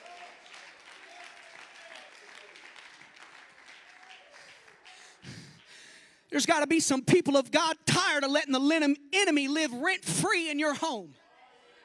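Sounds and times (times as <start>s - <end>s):
audience clapping hands in praise: 0.0s - 6.0s
speech: 6.3s - 11.2s.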